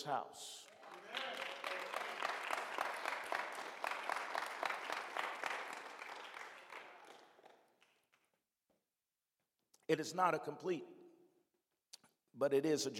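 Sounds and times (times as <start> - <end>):
speech: 0.0 - 1.4, 9.9 - 11.0, 12.4 - 12.9
audience applauding: 0.6 - 8.1.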